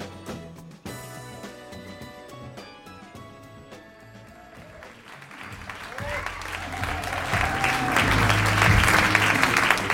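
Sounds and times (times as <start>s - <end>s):
audience applause: 4.3s - 9.9s.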